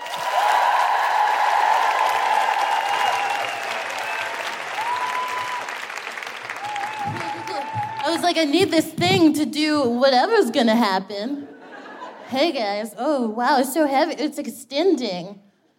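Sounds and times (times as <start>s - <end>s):
crowd whooping: 0.0s - 8.2s
audience applause at a live feminist comedy show: 0.0s - 8.3s
speech: 8.2s - 11.5s, 12.3s - 15.4s.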